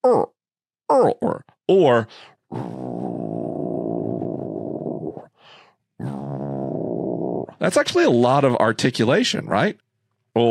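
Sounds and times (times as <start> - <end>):
voice imitating an alligator's rolling growl: 0.0 - 1.6, 2.5 - 5.3, 6.0 - 7.8
speech: 1.0 - 3.1, 7.6 - 9.8.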